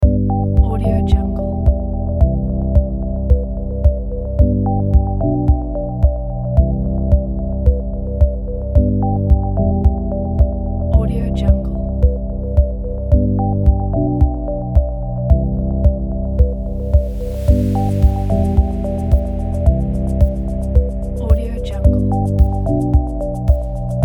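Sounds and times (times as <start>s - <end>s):
ambient timelapse music: 0.0s - 24.0s.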